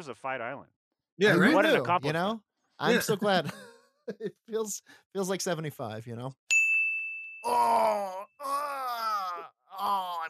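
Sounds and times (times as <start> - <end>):
speech: 0.0 - 6.5, 7.4 - 10.2
high ding tone: 6.5 - 8.0
man groaning in pain: 7.4 - 10.2.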